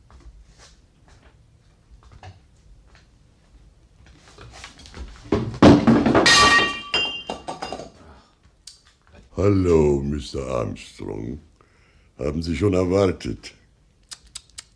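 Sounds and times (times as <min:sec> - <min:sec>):
china vase shattering: 0:05.6 - 0:08.0
china pieces clinking: 0:06.0 - 0:08.0
speech: 0:09.4 - 0:11.5, 0:12.2 - 0:13.6.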